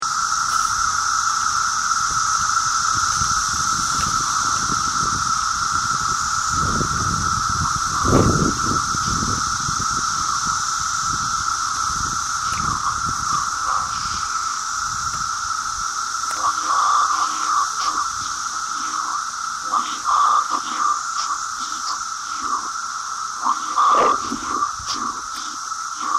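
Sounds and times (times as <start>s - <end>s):
cicada: 0.0s - 26.1s.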